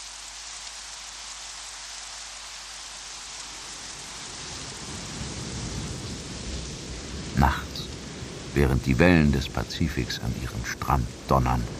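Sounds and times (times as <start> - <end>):
heavy tropical rain pouring down on an island: 0.0 - 11.7
speech: 8.6 - 11.7.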